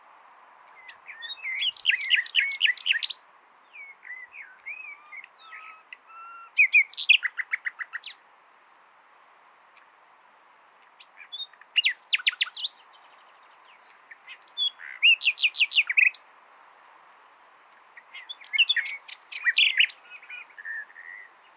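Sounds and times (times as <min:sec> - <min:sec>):
common nightingale song: 0:00.6 - 0:08.2, 0:10.8 - 0:16.3, 0:17.7 - 0:21.5.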